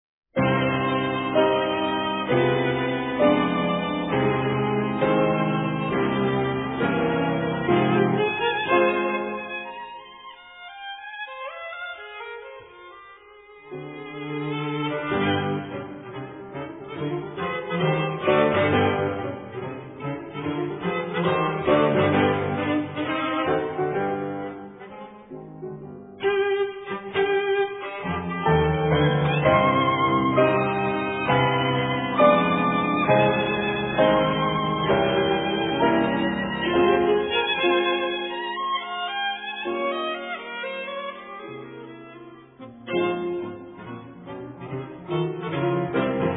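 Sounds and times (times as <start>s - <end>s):
piano trio in C minor: 0.4s - 10.1s, 12.2s - 46.3s.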